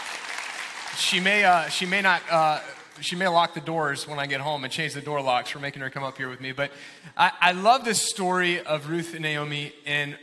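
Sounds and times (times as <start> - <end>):
audience applause: 0.0 - 3.1
speech: 1.0 - 10.2.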